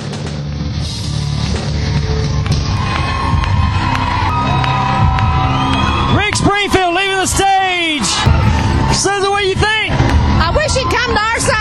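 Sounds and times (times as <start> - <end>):
concert crowd cheering in a loud steady roar: 1.1 - 11.6
scattered clapping: 1.4 - 11.6
people shouting: 2.5 - 11.6
high whistles: 4.3 - 7.4.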